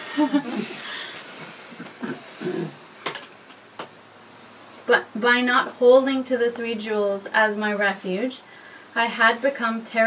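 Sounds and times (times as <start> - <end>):
breath taken partway through reciting a refuge prayer: 0.0 - 2.9, 8.4 - 9.0
speech: 0.2 - 1.0, 4.9 - 10.0.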